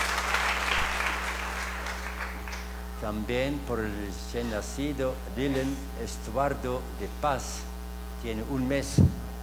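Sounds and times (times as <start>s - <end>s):
audience applause: 0.0s - 2.7s
low electrical hum: 0.0s - 9.4s
speech: 3.0s - 9.2s.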